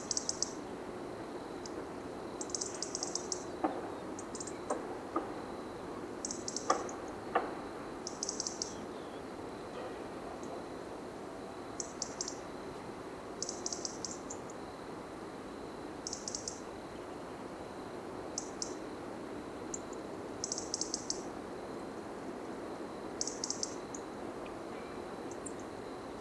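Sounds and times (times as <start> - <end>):
European robin sharp high ticking calls: 0.0 - 0.6, 2.4 - 5.3, 6.2 - 9.3, 11.8 - 12.5, 13.4 - 14.5, 16.0 - 16.7, 18.4 - 18.8, 19.7 - 21.3, 23.2 - 24.6
low background hiss: 0.0 - 26.1.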